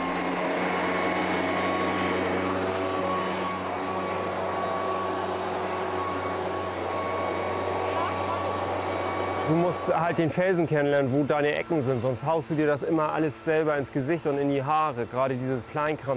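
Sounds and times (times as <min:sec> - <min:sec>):
blower clearing peanut shells off rock: 0:00.0 - 0:11.7
speech: 0:09.5 - 0:16.1.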